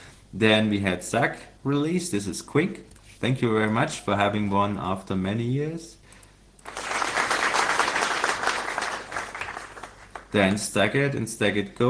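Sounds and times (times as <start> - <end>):
speech: 0.3 - 6.0, 10.3 - 11.8
audience applause: 6.7 - 10.3.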